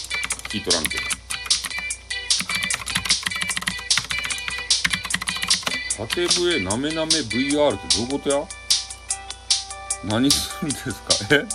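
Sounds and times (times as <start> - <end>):
typing on a computer keyboard: 0.0 - 6.6
speech: 0.5 - 1.2, 6.0 - 8.6, 10.0 - 11.5.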